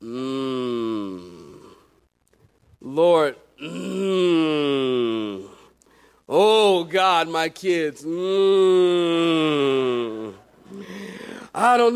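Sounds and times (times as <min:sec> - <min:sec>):
person groaning in prayer: 0:00.0 - 0:01.9, 0:03.6 - 0:05.7, 0:08.2 - 0:11.5
speech: 0:03.0 - 0:04.3, 0:06.8 - 0:10.9, 0:11.6 - 0:11.9.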